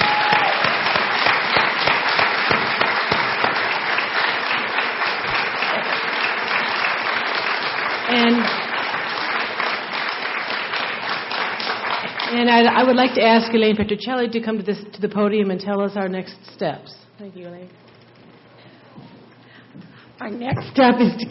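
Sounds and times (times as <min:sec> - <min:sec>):
rousing applause: 0:00.0 - 0:13.0
speech: 0:12.4 - 0:17.9, 0:20.2 - 0:21.3.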